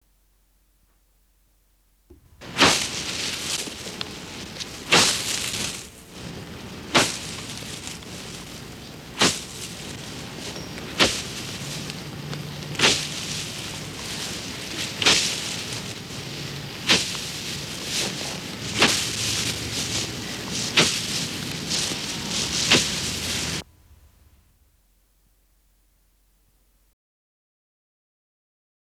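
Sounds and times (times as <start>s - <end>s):
scythe cutting wheat: 2.1s - 24.4s.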